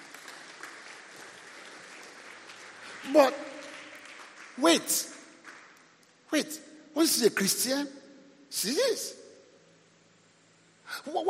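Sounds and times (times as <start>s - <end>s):
audience clapping hands: 0.0s - 6.5s
speech: 3.0s - 3.5s, 4.6s - 5.2s, 6.3s - 9.2s, 10.9s - 11.2s.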